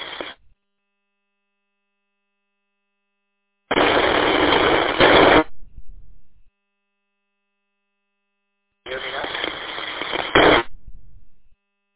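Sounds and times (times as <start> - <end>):
radio static: 0.0 - 0.4, 3.7 - 6.5, 8.9 - 11.5.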